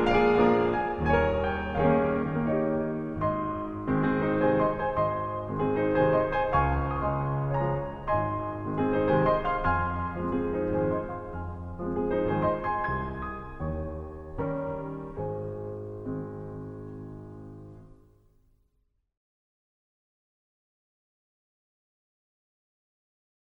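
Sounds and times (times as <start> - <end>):
piano waltz in A flat major: 0.0 - 18.2.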